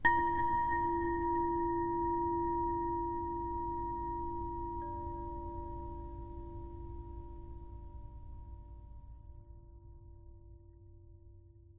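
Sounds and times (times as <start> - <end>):
low ambient abstract chimes: 0.0 - 7.2.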